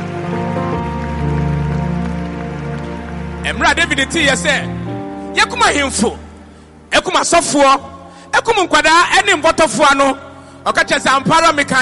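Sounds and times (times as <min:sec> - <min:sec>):
crowd clapping: 0:00.0 - 0:04.9
speech: 0:03.5 - 0:06.2, 0:07.0 - 0:11.8.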